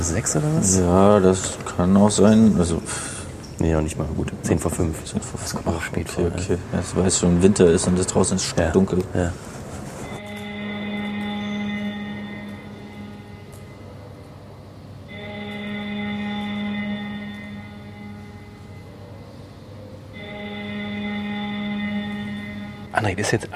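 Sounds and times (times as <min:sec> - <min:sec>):
speech: 0:00.0 - 0:09.6, 0:23.2 - 0:23.5
parliament division bell summoning members to vote: 0:10.1 - 0:23.3.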